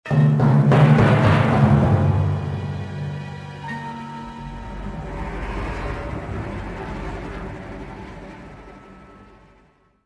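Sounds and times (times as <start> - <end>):
music: 0.0 - 10.0
swamp ambience: 3.1 - 9.5.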